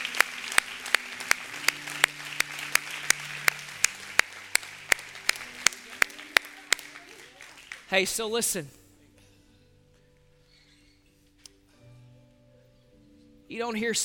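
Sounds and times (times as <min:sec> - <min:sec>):
audience applause: 0:00.0 - 0:08.1
speech: 0:07.9 - 0:08.8, 0:13.6 - 0:14.0.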